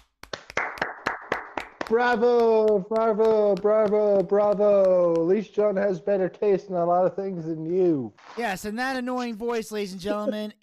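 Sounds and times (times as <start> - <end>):
hand claps: 0.0 - 5.8
speech: 1.9 - 10.6.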